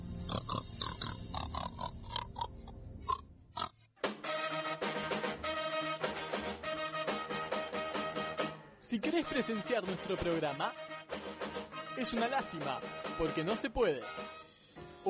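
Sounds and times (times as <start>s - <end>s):
loud steady music: 0.0s - 3.1s, 4.0s - 15.0s
pig grunting and oinking: 0.2s - 3.9s
speech: 8.9s - 10.9s, 12.0s - 14.4s.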